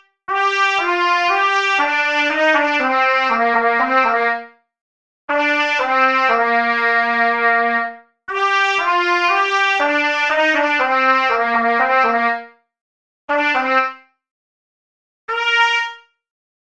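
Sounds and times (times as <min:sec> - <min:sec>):
trumpet: 0:00.3 - 0:04.5, 0:05.3 - 0:12.5, 0:13.3 - 0:14.0, 0:15.3 - 0:16.1.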